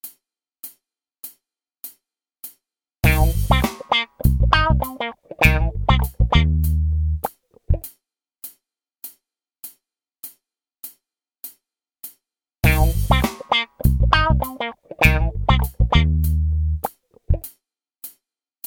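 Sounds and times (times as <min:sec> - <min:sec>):
funk improvisation: 0:03.0 - 0:07.9, 0:12.6 - 0:17.5.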